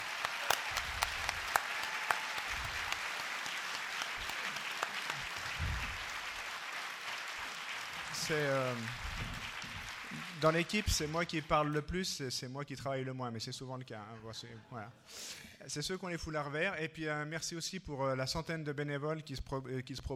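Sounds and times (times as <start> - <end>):
audience applause: 0.0 - 11.4
speech: 8.3 - 9.4, 10.4 - 20.1.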